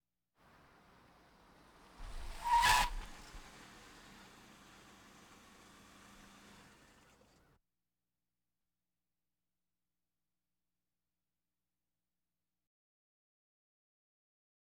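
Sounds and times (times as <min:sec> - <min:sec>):
various automobiles: 0:00.4 - 0:07.6.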